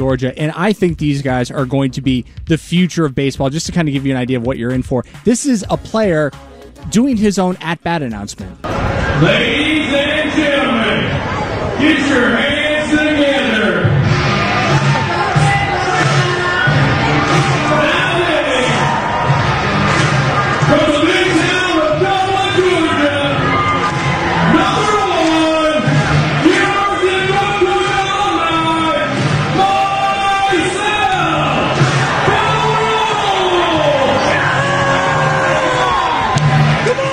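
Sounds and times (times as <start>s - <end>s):
speech: 0.0s - 13.1s
baseball stadium crowd cheering: 8.6s - 37.1s.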